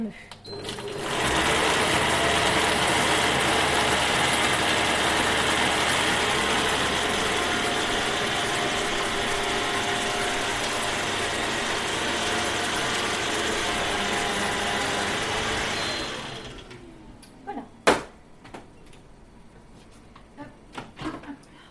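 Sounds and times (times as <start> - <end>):
kitchen food processor running at speed 5: 0.5 - 16.9.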